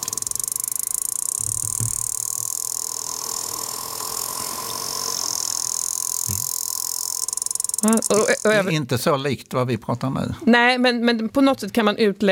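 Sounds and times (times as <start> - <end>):
sperm whale clicks: 0.0 - 8.7
speech: 7.8 - 12.2.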